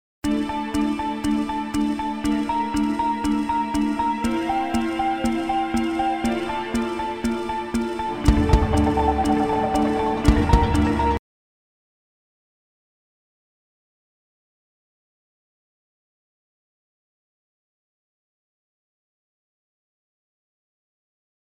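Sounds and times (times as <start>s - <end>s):
tense musical countdown: 0.2s - 11.2s.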